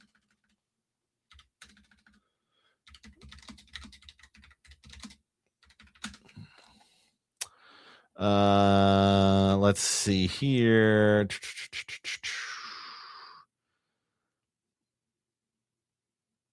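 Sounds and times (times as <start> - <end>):
typing on a computer keyboard: 0.0 - 0.6, 1.3 - 2.2, 2.8 - 6.4
speech: 8.2 - 11.6.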